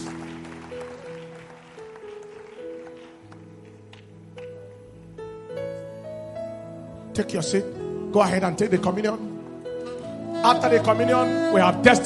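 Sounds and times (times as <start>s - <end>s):
audience clapping hands: 0.0s - 4.6s
speech: 7.2s - 9.3s, 10.4s - 12.0s.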